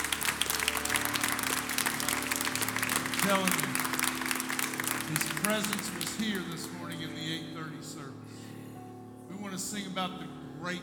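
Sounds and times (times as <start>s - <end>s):
church congregation clapping in praise during a morning service: 0.0s - 7.4s
speech: 3.2s - 3.8s, 5.1s - 8.4s, 9.3s - 10.8s.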